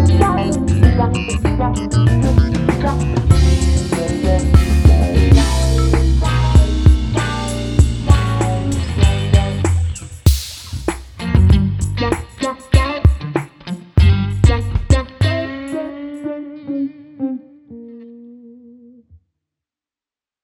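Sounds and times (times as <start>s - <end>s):
comedic groove music: 0.0s - 15.8s.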